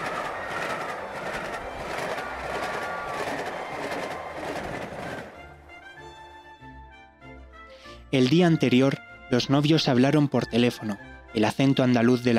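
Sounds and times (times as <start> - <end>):
train rolling on rails: 0.0 - 5.7
speech: 8.1 - 12.3.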